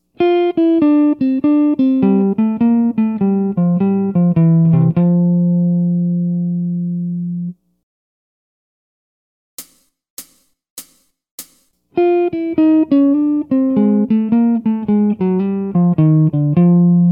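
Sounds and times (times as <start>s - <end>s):
jazz guitar: 0.2s - 7.6s, 12.0s - 17.1s.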